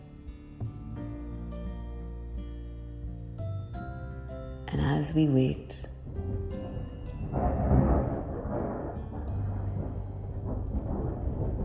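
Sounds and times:
speech: 0:04.7 - 0:05.9
raindrops pattering: 0:05.8 - 0:11.6
thunder rumbling: 0:05.9 - 0:11.6.

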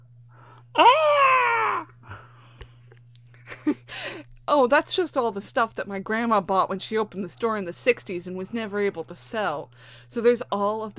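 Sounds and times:
steady low hum: 0:00.0 - 0:10.9
voice imitating a scream: 0:00.8 - 0:02.0
speech: 0:03.6 - 0:10.9.

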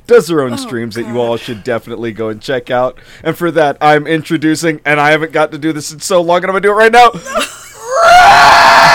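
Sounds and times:
speech: 0:00.1 - 0:07.6
person screeching imitating a pterodactyl call: 0:00.5 - 0:01.6, 0:07.8 - 0:08.8.

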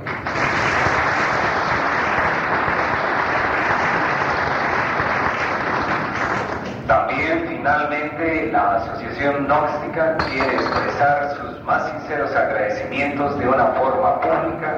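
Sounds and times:
audience applause: 0:00.0 - 0:06.7
speech: 0:07.6 - 0:14.7.

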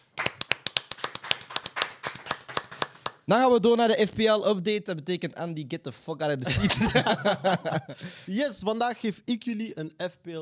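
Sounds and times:
audience clapping: 0:00.0 - 0:03.3
speech: 0:03.3 - 0:10.4
laughter: 0:06.4 - 0:08.3.

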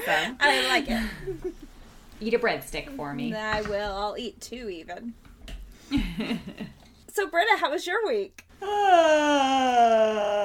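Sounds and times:
speech: 0:00.0 - 0:01.6, 0:02.2 - 0:05.3, 0:05.9 - 0:10.4
person yawning: 0:08.6 - 0:10.4.

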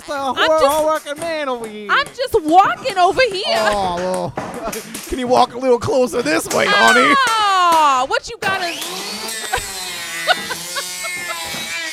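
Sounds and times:
speech: 0:00.1 - 0:09.1
laughter: 0:03.3 - 0:07.6, 0:09.2 - 0:11.7
power drill drilling: 0:08.4 - 0:11.9.

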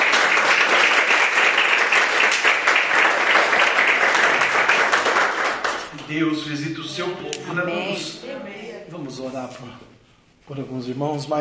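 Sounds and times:
audience clapping: 0:00.0 - 0:06.5
speech: 0:06.1 - 0:11.3.

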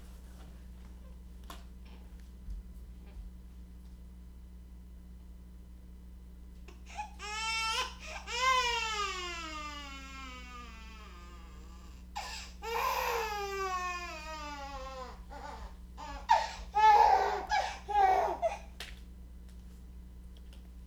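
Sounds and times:
baby crying loudly: 0:06.9 - 0:18.7.

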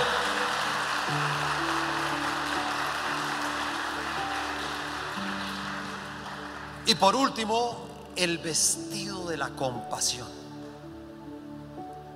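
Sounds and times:
audience applauding: 0:00.0 - 0:07.9
speech: 0:06.9 - 0:10.4.

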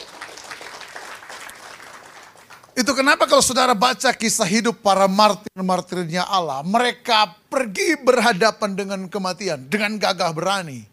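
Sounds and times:
audience clapping applause: 0:00.0 - 0:02.9
speech: 0:02.8 - 0:10.9.

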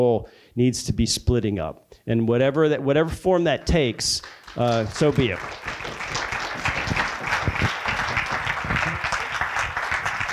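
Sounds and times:
speech: 0:00.0 - 0:06.0
audience applause: 0:04.2 - 0:10.3.

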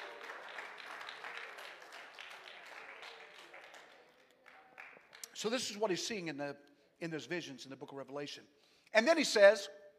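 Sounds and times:
crowd, audience clapping hands: 0:00.0 - 0:05.6
speech: 0:05.4 - 0:09.8.

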